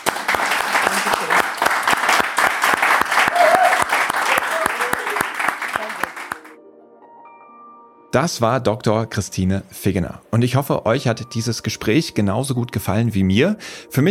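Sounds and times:
audience applause: 0.0s - 6.6s
speech: 8.1s - 14.0s.

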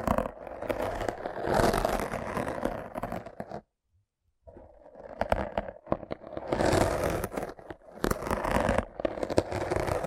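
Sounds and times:
wet crackling scraping for rough brain cleaning: 0.0s - 3.5s, 4.6s - 10.0s.

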